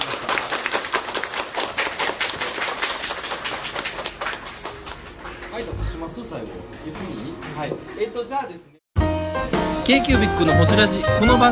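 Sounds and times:
audience applause: 0.0s - 8.3s
speech: 5.6s - 8.8s, 9.4s - 11.5s.

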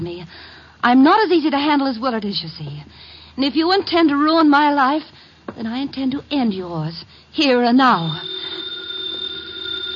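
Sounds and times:
speech: 0.0s - 8.5s
telephone ringing: 7.8s - 9.9s.

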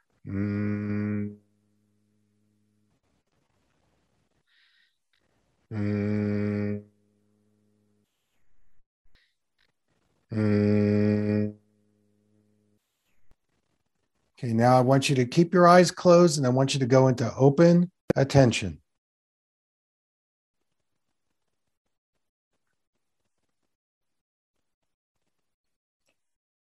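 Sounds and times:
closed-mouth humming on the exhale: 0.0s - 1.5s, 5.7s - 7.0s, 10.3s - 11.7s
speech: 0.2s - 0.8s, 5.7s - 5.9s, 14.4s - 18.8s.

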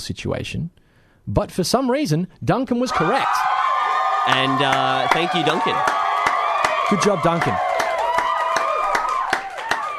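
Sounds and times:
speech: 0.0s - 3.6s, 4.2s - 6.0s, 6.9s - 7.7s
clapping: 4.2s - 9.9s.

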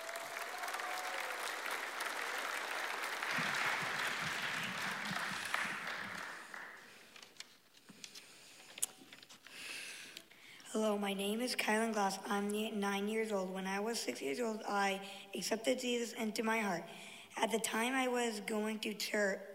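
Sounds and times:
audience applause welcoming a speaker: 0.0s - 7.0s
speech: 10.8s - 19.5s.

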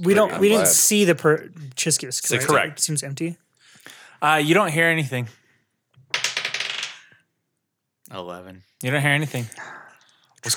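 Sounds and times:
speech: 0.0s - 5.4s, 8.1s - 9.8s
dice rolling on a table: 6.0s - 7.2s.

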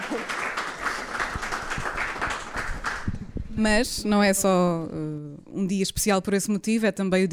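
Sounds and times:
audience applause: 0.0s - 3.1s
speech: 3.6s - 7.3s.

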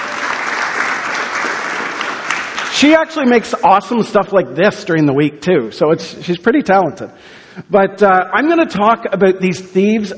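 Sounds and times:
applause for the band: 0.0s - 3.1s
speech: 2.8s - 10.1s.

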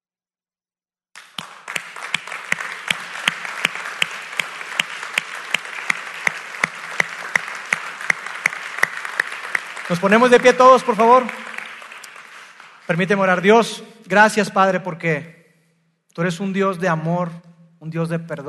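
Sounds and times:
audience applauding: 1.2s - 13.5s
speech: 9.9s - 11.5s, 12.9s - 15.4s, 16.2s - 18.4s.

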